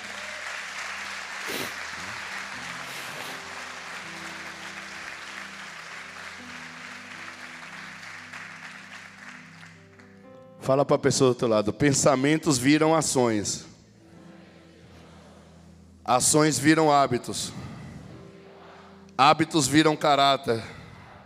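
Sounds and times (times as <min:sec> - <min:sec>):
audience applause: 0:00.0 - 0:10.1
speech: 0:10.7 - 0:13.7, 0:16.1 - 0:17.7, 0:19.2 - 0:20.8.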